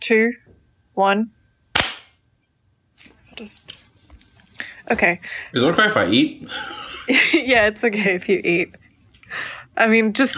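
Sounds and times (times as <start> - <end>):
speech: 0.1 - 1.4, 3.4 - 3.8, 4.6 - 10.3
single hand clap: 1.8 - 2.1
laughter: 6.4 - 7.7.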